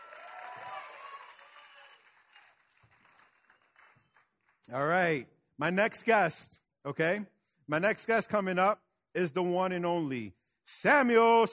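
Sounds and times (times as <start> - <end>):
audience clapping: 0.0 - 4.9
speech: 4.7 - 11.5.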